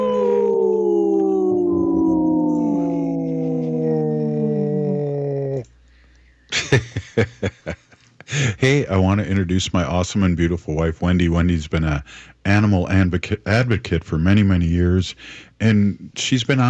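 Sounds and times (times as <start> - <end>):
wolves howling in chorus: 0.0 - 5.6
laughter: 6.5 - 8.8
speech: 6.7 - 16.6.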